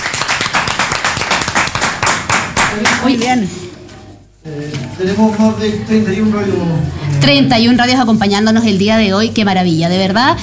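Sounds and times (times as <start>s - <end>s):
applause for participating radio stations: 0.0s - 3.1s
speech: 2.8s - 3.7s, 4.4s - 10.4s.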